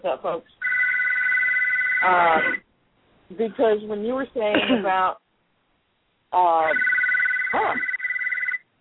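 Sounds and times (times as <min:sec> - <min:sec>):
speech: 0:00.0 - 0:00.7, 0:02.0 - 0:02.7, 0:03.3 - 0:05.2, 0:06.3 - 0:06.9, 0:07.5 - 0:07.9
telephone ringing: 0:00.6 - 0:02.6, 0:06.6 - 0:08.7.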